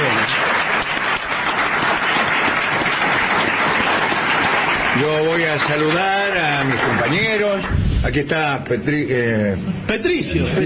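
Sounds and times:
audience applauding: 0.0s - 7.8s
speech: 5.6s - 10.6s.

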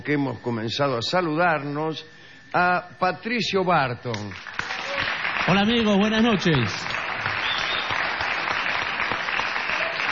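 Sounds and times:
speech: 0.0s - 6.9s
audience applause: 4.3s - 10.0s.

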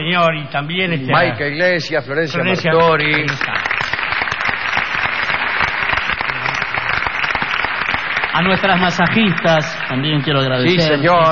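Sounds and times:
speech: 0.1s - 3.6s, 8.4s - 11.3s
audience applause for the production team: 2.4s - 11.3s.

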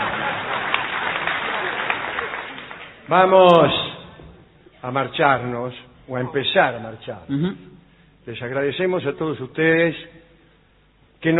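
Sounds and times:
audience applause: 0.0s - 3.7s
speech: 3.1s - 3.8s, 4.8s - 10.2s, 11.2s - 11.3s.

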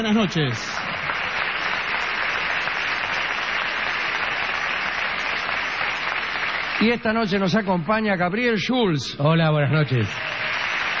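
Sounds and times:
speech: 0.0s - 0.8s, 6.8s - 10.3s
audience ovation applause: 0.0s - 7.6s, 9.8s - 10.9s.

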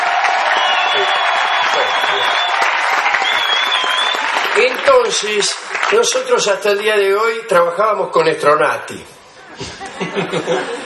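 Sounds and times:
group shouting and cheering: 0.0s - 4.8s
speech: 4.7s - 9.2s, 10.2s - 10.8s
laughter: 9.3s - 10.8s.

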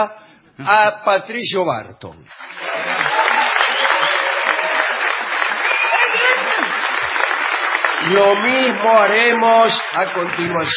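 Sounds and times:
speech: 0.0s - 3.4s, 8.0s - 10.7s
audience ovation applause: 2.3s - 10.7s.

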